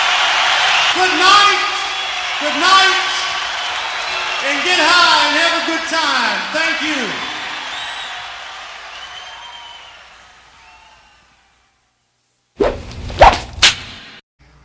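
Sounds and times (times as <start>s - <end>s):
crowd noise: 0.0s - 11.6s
speech: 1.0s - 1.7s, 2.4s - 3.1s, 4.4s - 7.3s
whistles: 7.6s - 8.3s, 8.9s - 11.4s
whip swishing and cracking: 12.6s - 14.2s.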